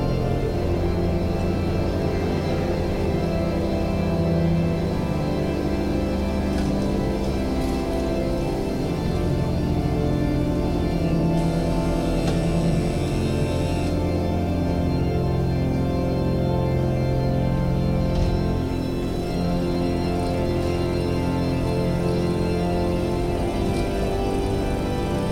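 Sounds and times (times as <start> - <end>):
church organ practice in a church in Germany: 0.0 - 25.3.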